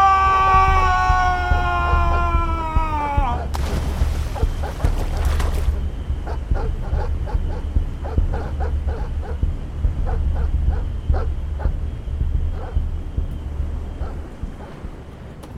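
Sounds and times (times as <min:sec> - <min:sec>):
heavy low rumble: 0:00.0 - 0:15.5
hounds barking: 0:03.3 - 0:13.0, 0:13.9 - 0:15.0.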